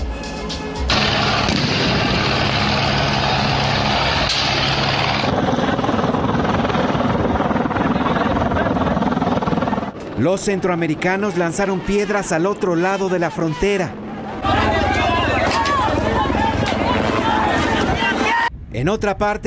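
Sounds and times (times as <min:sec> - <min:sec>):
US helicopters flying over the area: 0:00.8 - 0:18.5
speech: 0:10.2 - 0:14.0, 0:18.8 - 0:19.4.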